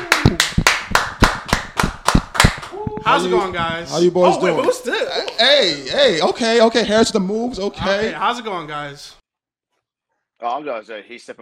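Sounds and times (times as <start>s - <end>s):
hand claps: 0.0s - 3.8s
speech: 3.1s - 9.2s, 10.4s - 11.4s.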